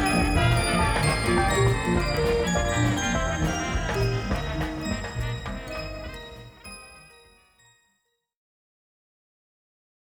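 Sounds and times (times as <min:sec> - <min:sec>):
little melody: 0:00.0 - 0:07.3.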